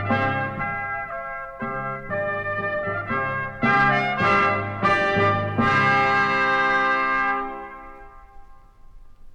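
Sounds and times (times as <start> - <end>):
orchestra with children's instruments in G major: 0.0 - 8.2.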